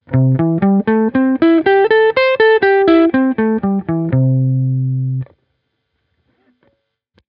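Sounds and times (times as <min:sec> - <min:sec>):
blues guitar: 0:00.0 - 0:05.3.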